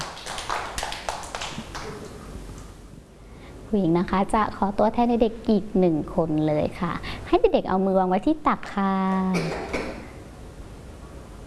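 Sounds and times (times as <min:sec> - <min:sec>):
children clapping: 0:00.0 - 0:02.2
speech: 0:03.7 - 0:09.8.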